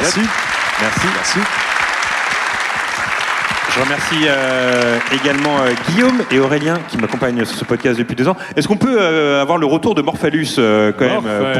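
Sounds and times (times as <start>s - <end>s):
audience applause: 0.0s - 8.5s
speech: 0.1s - 1.7s, 3.7s - 11.5s.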